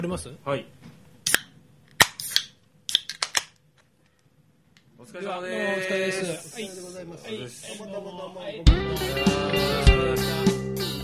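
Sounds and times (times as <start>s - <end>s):
speech: 0.0s - 0.9s, 5.0s - 11.0s
drink cans cracked open for a toast: 1.3s - 3.6s.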